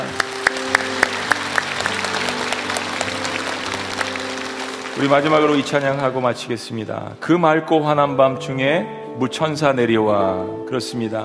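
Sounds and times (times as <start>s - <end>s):
audience applause: 0.0s - 6.5s
speech: 5.0s - 11.2s.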